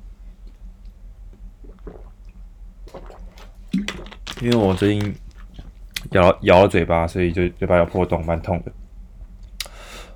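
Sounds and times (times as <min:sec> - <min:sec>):
low steady hum: 0:00.0 - 0:10.1
person drinking sparkling water: 0:01.6 - 0:06.1
speech: 0:04.4 - 0:05.2, 0:06.1 - 0:08.8.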